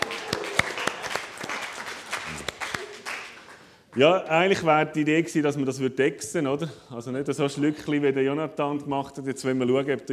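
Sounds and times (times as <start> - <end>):
audience applause: 0.0 - 3.7
speech: 4.0 - 10.1.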